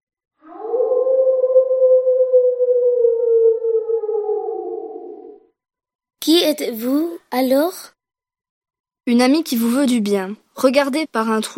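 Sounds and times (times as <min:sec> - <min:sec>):
wolf howl: 0:00.4 - 0:05.5
speech: 0:06.3 - 0:08.0, 0:09.1 - 0:11.5.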